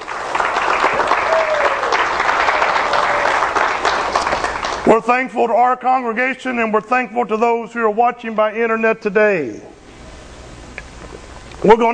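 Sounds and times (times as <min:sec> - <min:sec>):
audience applause: 0:00.0 - 0:04.9
speech: 0:04.9 - 0:09.8, 0:11.6 - 0:11.9.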